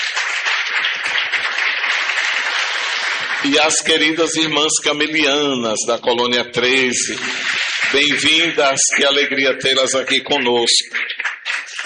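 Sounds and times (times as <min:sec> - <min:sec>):
audience applause: 0:00.0 - 0:04.1, 0:07.0 - 0:11.8
speech: 0:03.4 - 0:11.3.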